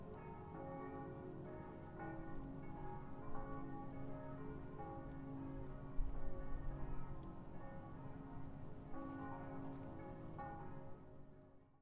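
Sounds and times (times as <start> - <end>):
church bells on Ferdinandstrasse: 0.0 - 11.8.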